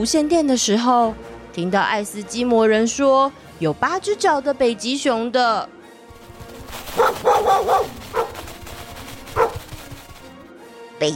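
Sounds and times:
speech: 0:00.0 - 0:05.8, 0:06.7 - 0:08.3, 0:11.0 - 0:11.1
sled dogs barking: 0:06.7 - 0:10.3.

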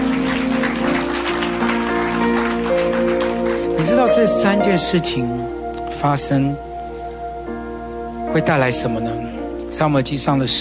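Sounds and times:
audience clapping hands: 0:00.0 - 0:04.6
speech: 0:04.1 - 0:06.7, 0:08.4 - 0:10.5.

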